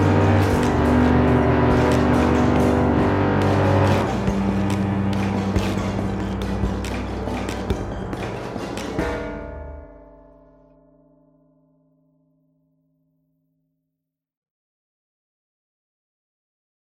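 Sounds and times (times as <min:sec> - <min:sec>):
fight music loop: 0:00.0 - 0:09.8.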